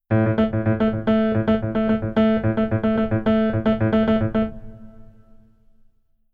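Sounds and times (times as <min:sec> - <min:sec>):
keyboard: 0:00.1 - 0:05.5.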